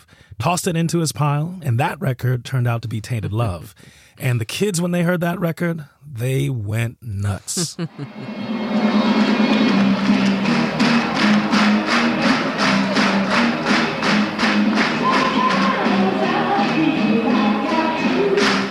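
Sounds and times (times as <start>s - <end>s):
speech: 0.4s - 9.7s
laughter: 7.4s - 9.0s
crowd at Wigan Casino soul dance club: 8.4s - 18.6s.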